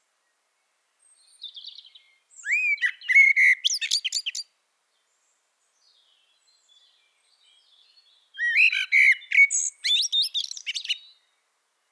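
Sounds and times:
Eurasian blackbird warbling song: 1.0s - 4.5s, 5.9s - 11.2s.

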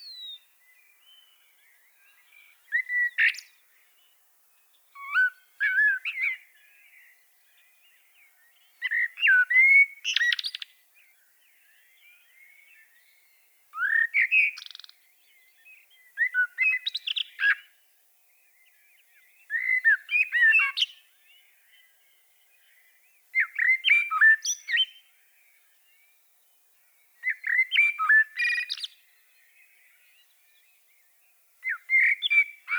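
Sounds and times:
common blackbird singing: 0.0s - 4.1s, 4.9s - 17.7s, 18.5s - 26.0s, 27.2s - 31.0s, 31.6s - 32.7s.

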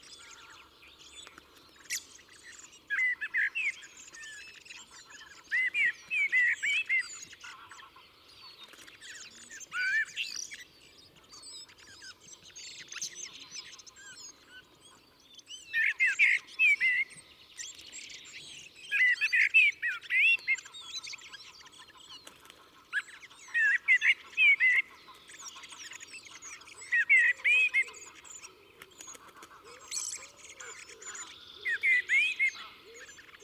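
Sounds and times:
chorus of other small birds calling: 0.0s - 33.4s
common blackbird song: 0.0s - 33.4s.

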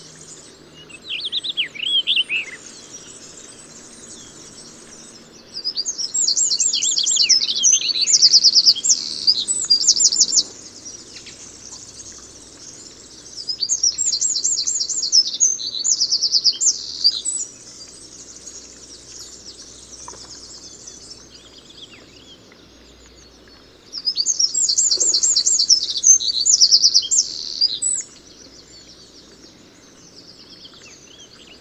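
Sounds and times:
Eurasian wren song: 0.0s - 22.4s, 23.0s - 31.5s.

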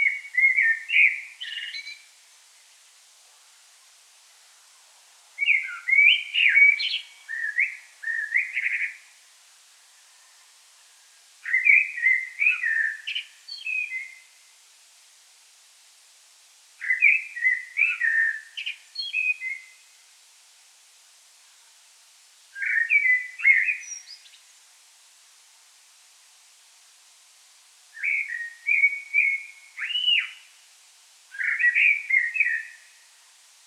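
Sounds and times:
Common blackbird song: 0.0s - 2.1s, 5.4s - 9.1s, 11.4s - 14.4s, 16.8s - 19.8s, 22.6s - 24.5s, 28.0s - 30.5s, 31.3s - 33.0s.

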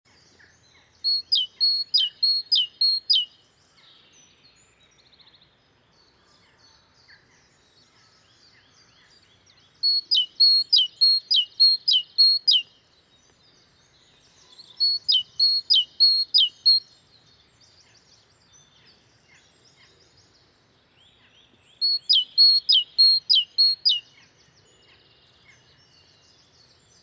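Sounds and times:
soft chirps from other birds: 0.1s - 27.0s
great tit song: 0.2s - 3.3s, 9.8s - 12.7s, 14.2s - 17.3s, 21.4s - 24.6s.

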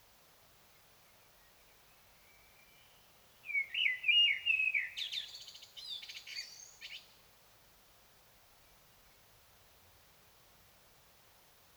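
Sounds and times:
common blackbird singing: 3.5s - 6.6s.

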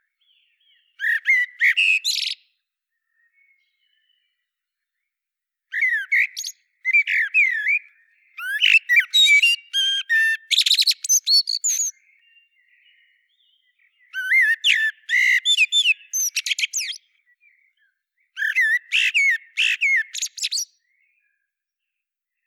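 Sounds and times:
Common blackbird warbling: 0.0s - 5.1s, 5.7s - 21.4s.

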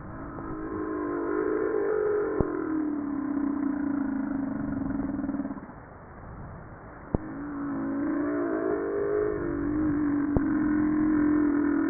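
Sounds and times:
humpback whale song with moans, downsweeps and pulsed tonal phrases: 0.0s - 5.8s, 7.1s - 11.8s.

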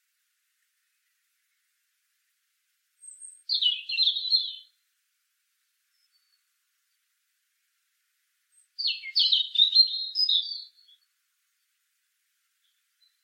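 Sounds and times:
European robin singing, Erithacus rubecula: 3.0s - 4.8s, 5.9s - 7.1s, 8.5s - 11.8s, 12.6s - 13.2s.

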